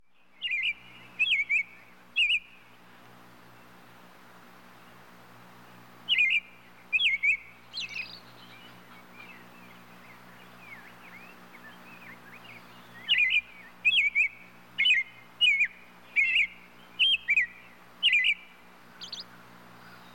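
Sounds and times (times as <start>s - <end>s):
robin chirping calls: 0.2s - 2.7s, 6.0s - 20.1s.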